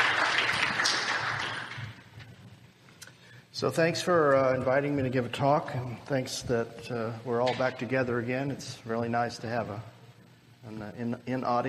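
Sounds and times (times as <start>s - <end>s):
audience applause welcoming a speaker: 0.0s - 2.1s
speech: 3.6s - 10.0s, 10.6s - 11.6s.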